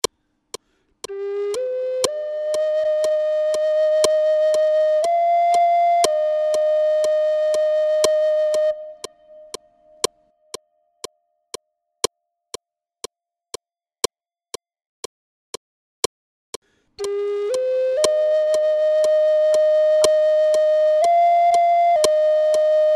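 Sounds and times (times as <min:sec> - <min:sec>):
flute: 0:01.0 - 0:10.1, 0:17.0 - 0:22.9.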